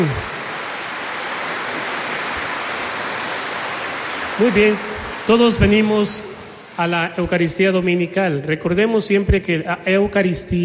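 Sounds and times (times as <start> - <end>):
speech: 0.0 - 0.3, 4.4 - 10.6
audience applause: 0.0 - 6.7.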